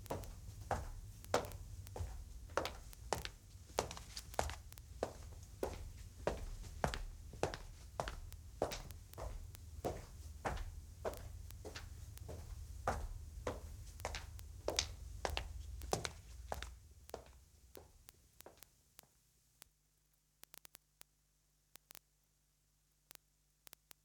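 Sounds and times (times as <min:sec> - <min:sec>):
footsteps: 0:00.0 - 0:18.6.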